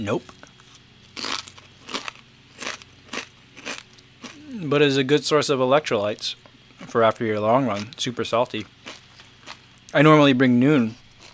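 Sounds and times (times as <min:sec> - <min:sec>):
speech: 0:00.0 - 0:00.5, 0:04.6 - 0:08.8, 0:09.9 - 0:11.0
crunching kettle chips: 0:00.5 - 0:04.6, 0:07.6 - 0:10.0, 0:10.8 - 0:11.3.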